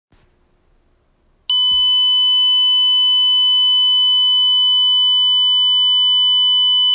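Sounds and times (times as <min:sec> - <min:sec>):
1 kHz test tone: 0:01.5 - 0:06.9.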